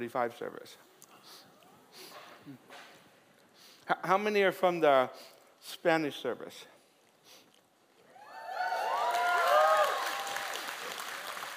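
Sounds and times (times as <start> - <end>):
speech: 0.0 - 1.5, 2.4 - 2.8, 3.9 - 6.7
church congregation cheering and clapping: 8.1 - 11.5.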